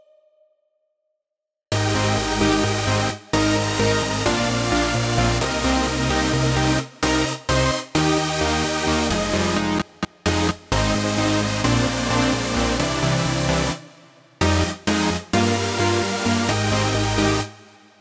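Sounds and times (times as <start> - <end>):
main synths without sidechain: 1.7 - 17.9.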